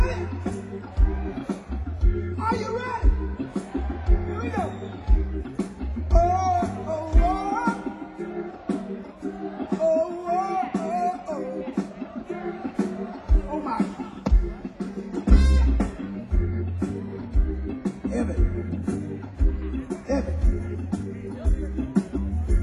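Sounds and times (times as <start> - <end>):
loud steady thumping bass beat: 0.0 - 7.5, 13.2 - 22.6
crowd singing back call-and-response: 0.0 - 22.6.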